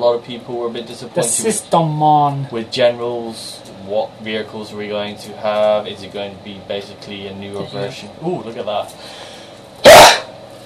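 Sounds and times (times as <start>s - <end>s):
speech: 0.0s - 9.3s
faint hum: 0.0s - 10.6s
loud explosive human sneeze: 9.8s - 10.3s.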